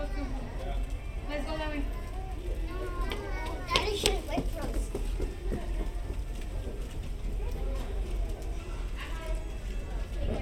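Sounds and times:
hotel lobby chatter including children: 0.0s - 10.3s.

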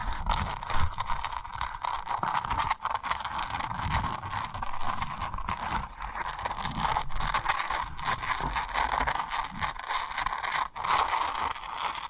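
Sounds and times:
tapping and rubbing on a rhinestone surface: 0.0s - 12.0s.

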